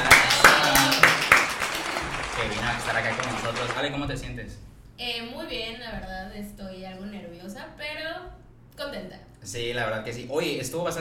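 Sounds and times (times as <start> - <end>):
scattered applause from a small group: 0.0 - 4.0
speech: 2.9 - 11.0.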